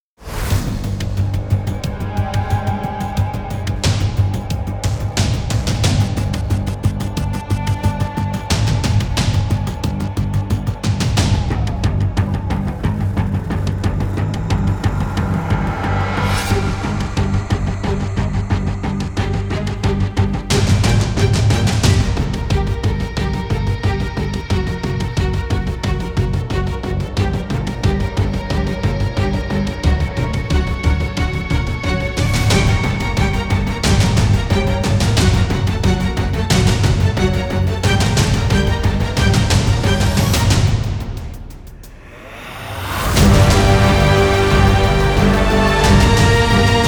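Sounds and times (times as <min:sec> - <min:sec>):
hybrid orchestral music: 0:00.2 - 0:46.8.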